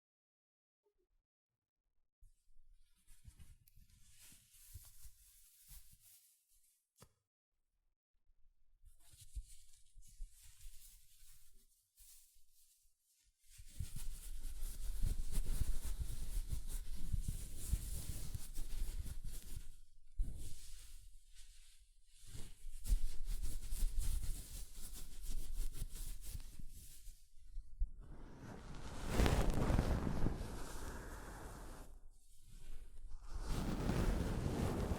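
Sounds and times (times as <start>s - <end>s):
soft fabric brushing against a microphone: 3.0s - 6.3s, 9.0s - 34.9s.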